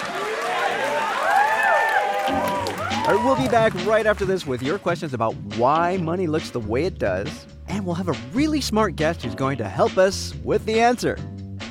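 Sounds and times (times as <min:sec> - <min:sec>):
live studio audience cheering: 0:00.0 - 0:05.0
speech: 0:03.1 - 0:11.3.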